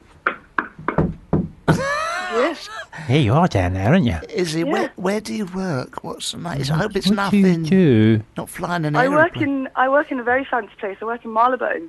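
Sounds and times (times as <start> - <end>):
banging on the floor: 0.6 - 1.7
laughter: 1.7 - 3.4, 9.0 - 9.5
speech: 2.4 - 11.8.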